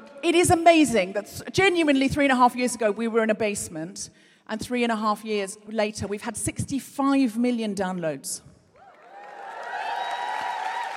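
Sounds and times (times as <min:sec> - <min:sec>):
speech: 0:00.2 - 0:08.5
live audience cheering and applauding with high whooping voices: 0:08.8 - 0:10.9.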